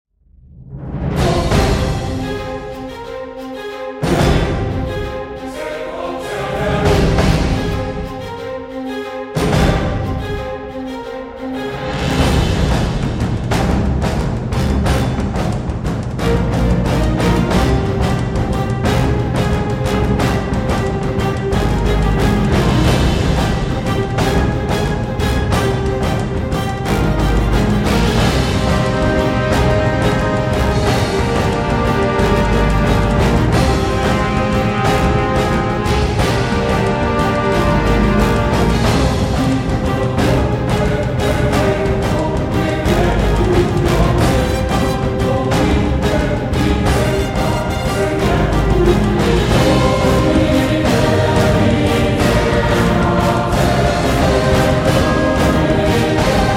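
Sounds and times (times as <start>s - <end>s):
castle level game music: 1.1s - 56.5s.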